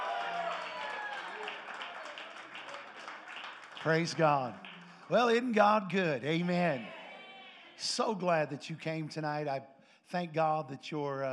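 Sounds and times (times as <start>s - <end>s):
audience hand clapping: 0.0s - 6.7s
speech: 3.8s - 7.0s, 7.8s - 11.3s.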